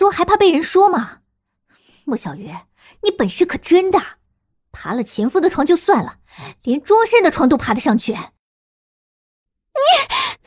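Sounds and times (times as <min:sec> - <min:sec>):
speech: 0:00.1 - 0:01.2, 0:02.1 - 0:08.4, 0:09.8 - 0:10.3
sharp gasp from shame and anger: 0:09.9 - 0:10.4.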